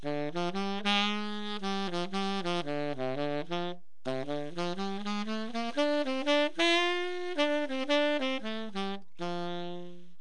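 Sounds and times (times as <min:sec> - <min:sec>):
saxophone: 0:00.0 - 0:10.1.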